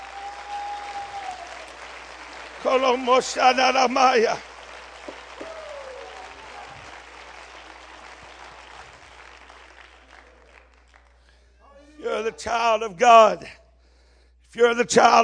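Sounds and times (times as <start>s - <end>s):
people clapping hands: 0.0s - 11.5s
speech: 2.6s - 4.5s, 12.4s - 13.6s, 14.5s - 15.2s.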